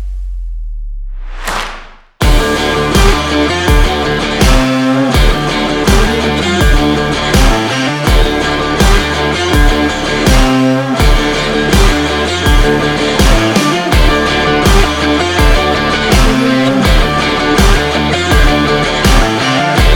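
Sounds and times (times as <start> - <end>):
hard rock music: 2.2 - 19.9.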